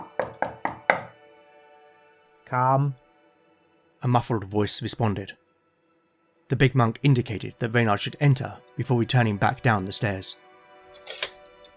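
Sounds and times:
monk knocking on a door: 0:00.0 - 0:01.2
speech: 0:02.5 - 0:03.0, 0:04.0 - 0:05.4, 0:06.5 - 0:10.4.

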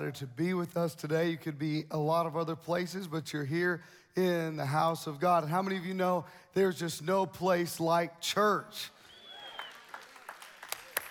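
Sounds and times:
speech: 0:00.0 - 0:09.0
audience clapping: 0:09.1 - 0:11.0.

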